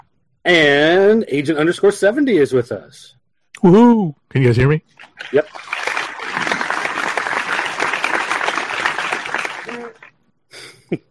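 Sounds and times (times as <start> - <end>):
speech: 0.4 - 5.8
applause sound effect: 5.4 - 10.1.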